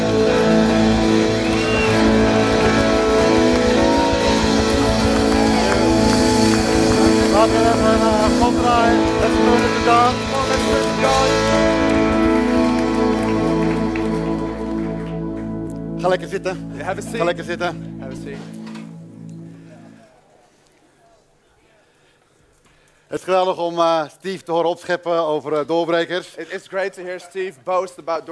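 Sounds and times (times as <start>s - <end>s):
audience applause: 0.0s - 15.5s
music playing: 0.0s - 20.2s
speech: 16.3s - 18.7s, 23.1s - 28.3s.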